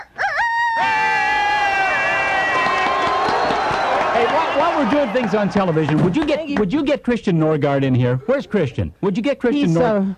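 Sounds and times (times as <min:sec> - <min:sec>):
chicken crowing: 0:00.0 - 0:04.3
speech: 0:04.6 - 0:10.1.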